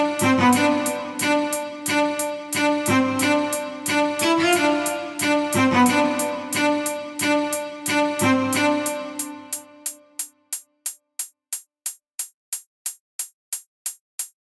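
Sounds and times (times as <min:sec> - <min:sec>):
instrumental violin: 0:00.0 - 0:10.1.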